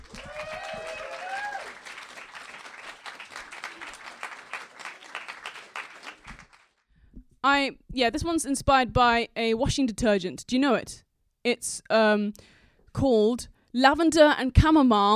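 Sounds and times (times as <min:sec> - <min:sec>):
audience applause welcoming a poet: 0:00.0 - 0:06.8
speech: 0:07.4 - 0:15.1.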